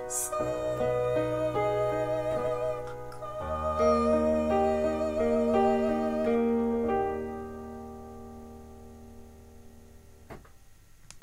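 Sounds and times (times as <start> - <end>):
tenor singing: 0.0 - 7.4.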